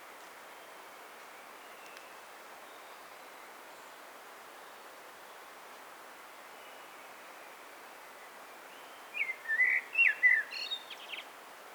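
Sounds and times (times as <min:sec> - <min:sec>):
common blackbird whistled song: 0:09.1 - 0:11.2.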